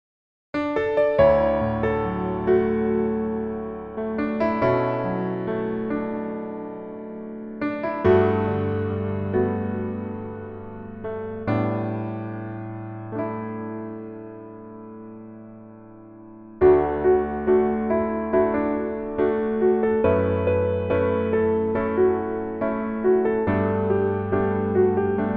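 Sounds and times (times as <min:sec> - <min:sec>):
piano melody backing track: 0:00.6 - 0:25.3.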